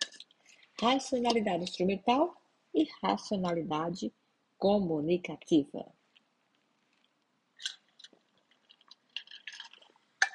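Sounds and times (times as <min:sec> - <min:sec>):
speech: 0:00.8 - 0:06.0
person sipping water: 0:07.6 - 0:10.3.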